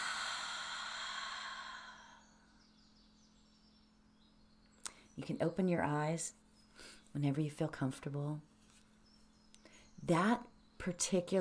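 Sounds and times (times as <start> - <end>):
deep breath drawn in and released during guided relaxation: 0.0 - 2.4
speech: 5.2 - 6.4, 7.1 - 8.5, 10.0 - 11.3.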